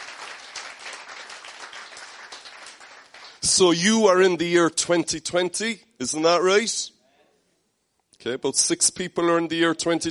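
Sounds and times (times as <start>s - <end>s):
audience applause welcoming guests: 0.0s - 3.4s
speech: 3.4s - 7.0s, 8.2s - 10.0s.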